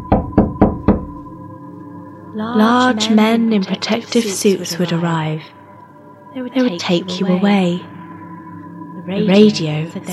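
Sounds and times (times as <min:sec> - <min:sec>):
firm knocks on a front door: 0:00.0 - 0:01.2
faint steady hum: 0:00.0 - 0:10.1
speech: 0:02.4 - 0:05.6, 0:06.3 - 0:07.9, 0:09.1 - 0:10.1.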